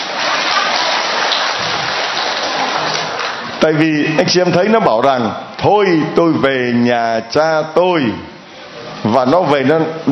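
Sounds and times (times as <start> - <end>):
audience applause: 0.0 - 3.6
speech: 3.6 - 8.3, 9.0 - 10.0.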